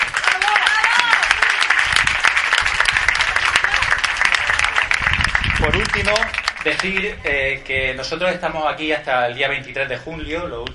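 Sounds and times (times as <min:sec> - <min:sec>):
applause: 0:00.0 - 0:07.2
speech: 0:06.0 - 0:10.7.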